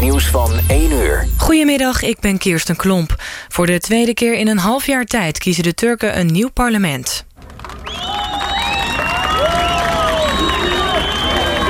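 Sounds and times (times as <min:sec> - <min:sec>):
speech: 0:00.2 - 0:08.5
crowd of supporters cheering Erdogan at a polling station: 0:07.4 - 0:11.6.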